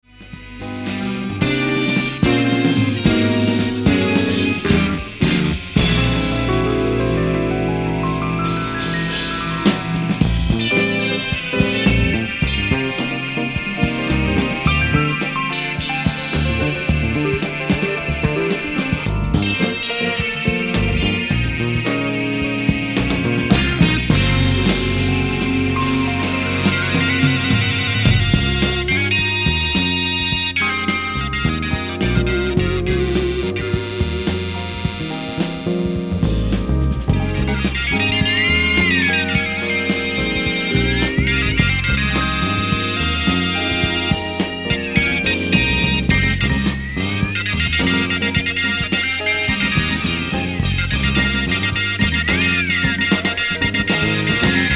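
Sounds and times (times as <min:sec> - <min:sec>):
electronic keyboard: 0:00.0 - 0:54.7.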